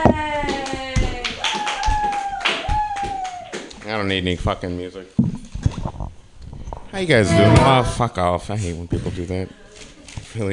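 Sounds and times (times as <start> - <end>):
open-mic comedy audience clapping: 0.5 - 4.1
speech: 4.0 - 5.3, 7.0 - 9.6
steady tonal sound: 7.0 - 8.2.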